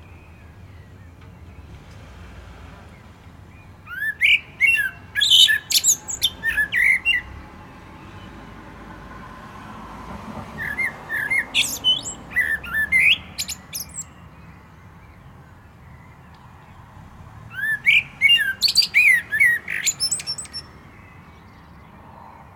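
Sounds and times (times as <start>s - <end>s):
common blackbird singing: 2.9s - 8.8s, 10.5s - 22.5s.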